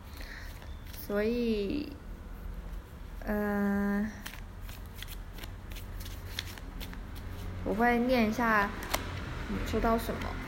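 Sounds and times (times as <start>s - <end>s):
low steady hum: 0.0s - 10.4s
deck of oracle cards being shuffled: 0.3s - 1.1s, 3.9s - 7.8s, 8.7s - 9.3s
speech: 1.1s - 2.0s, 3.2s - 4.2s, 7.6s - 8.8s, 9.5s - 10.4s.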